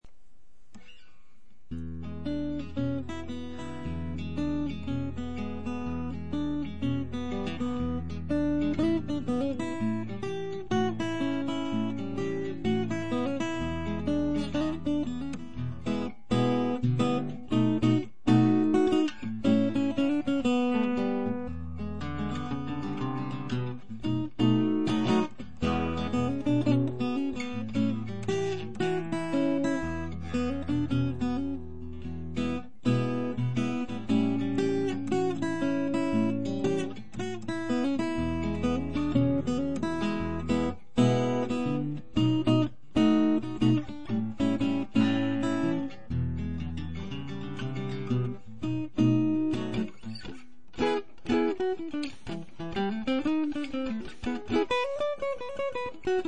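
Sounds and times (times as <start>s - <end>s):
blues music: 1.7s - 56.2s.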